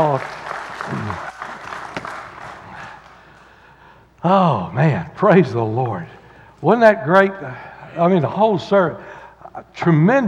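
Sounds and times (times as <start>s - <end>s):
speech: 0.0s - 1.3s, 4.2s - 10.2s
audience clapping: 0.0s - 3.5s.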